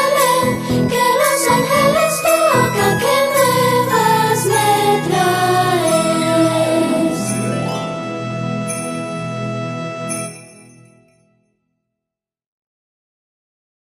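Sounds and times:
lively Spanish Christmas carol: 0.0s - 10.9s.

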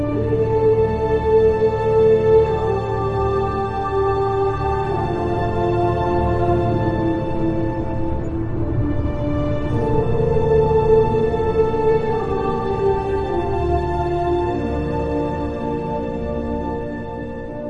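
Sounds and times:
cavern ambience: 0.0s - 17.6s
dwarven fantasy music: 0.0s - 17.6s.

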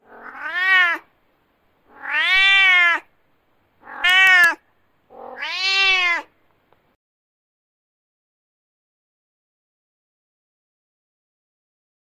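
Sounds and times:
cat: 0.0s - 1.1s, 1.9s - 3.1s, 3.8s - 6.3s.

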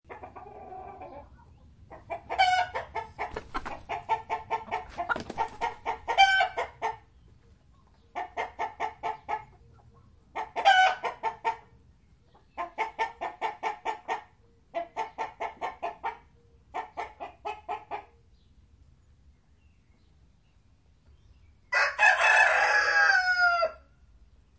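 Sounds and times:
chickens clucking: 0.1s - 18.2s
rooster crowing cock-a-doodle-doo: 21.7s - 23.9s.

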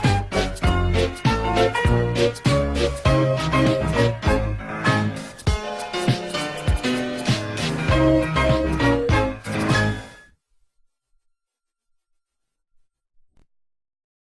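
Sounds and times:
theme song: 0.0s - 10.2s.

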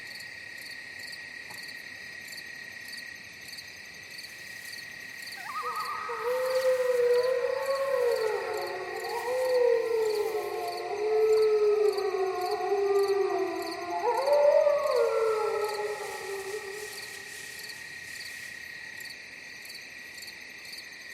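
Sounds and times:
wolf forest ambience: 4.1s - 20.2s.

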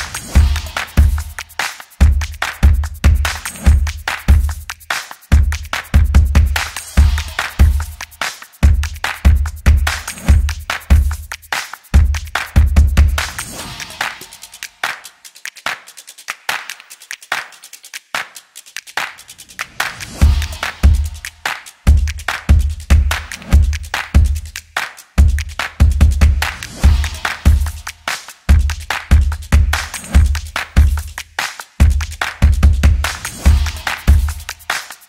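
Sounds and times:
upbeat drums and percussion background music: 0.0s - 35.0s.

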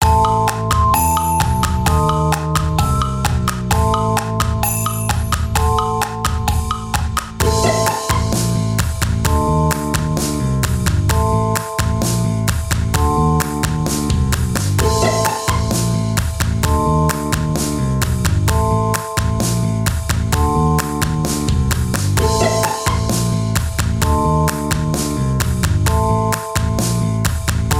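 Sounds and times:
rap music: 0.0s - 27.7s.

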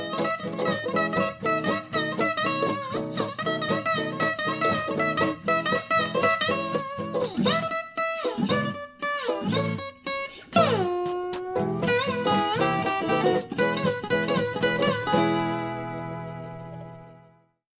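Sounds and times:
ukulele melody: 0.0s - 17.4s.

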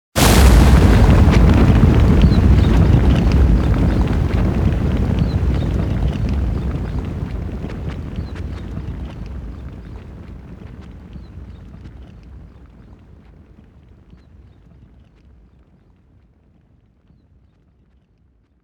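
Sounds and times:
landslide: 0.2s - 11.9s.

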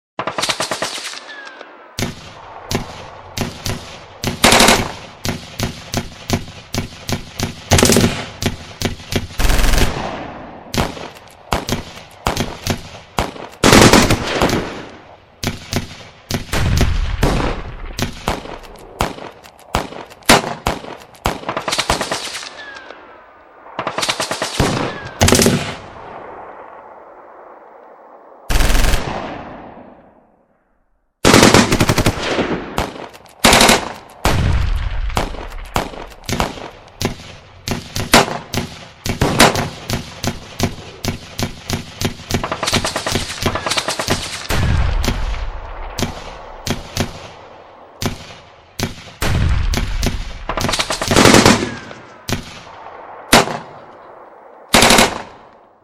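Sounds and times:
gunfire in a shootout: 0.2s - 26.8s, 28.5s - 30.2s, 31.2s - 55.6s
bomb explosions: 2.0s - 21.6s, 31.6s - 55.5s.

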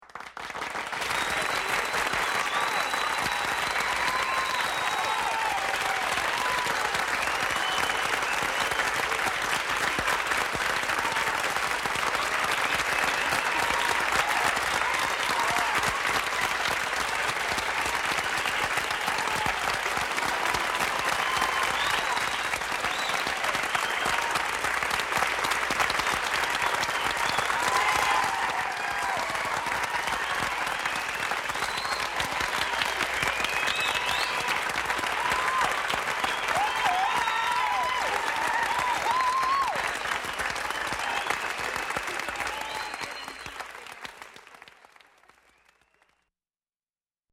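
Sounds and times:
applause: 0.0s - 46.4s.

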